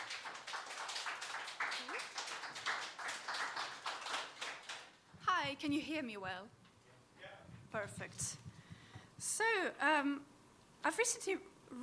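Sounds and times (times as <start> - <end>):
round of applause: 0.0 - 5.1
speech: 5.4 - 6.6, 7.7 - 8.5, 9.2 - 11.8.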